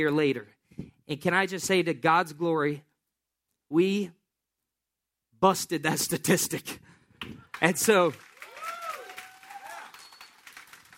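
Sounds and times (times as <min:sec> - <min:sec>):
speech: 0:00.0 - 0:02.9, 0:03.7 - 0:04.2, 0:05.4 - 0:08.3
church congregation applauding: 0:07.2 - 0:10.9.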